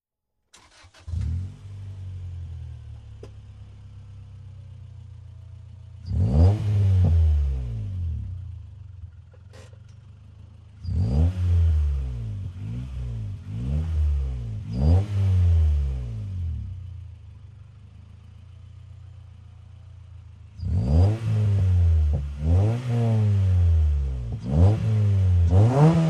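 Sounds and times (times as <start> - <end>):
Acura Integra engine starting: 0.5 - 26.0
Acura Integra engine revving: 0.6 - 3.3, 6.0 - 8.7, 10.7 - 17.0, 20.5 - 26.0
Acura Integra engine idling: 0.6 - 6.3, 7.8 - 11.0, 16.3 - 20.7.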